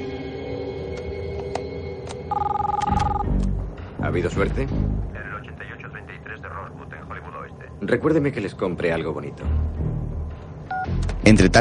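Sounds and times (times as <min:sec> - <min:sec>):
busy hum: 0:00.1 - 0:11.3
electronic telephone ringing: 0:02.3 - 0:03.4
speech: 0:04.0 - 0:05.2, 0:07.8 - 0:09.8, 0:11.2 - 0:11.6.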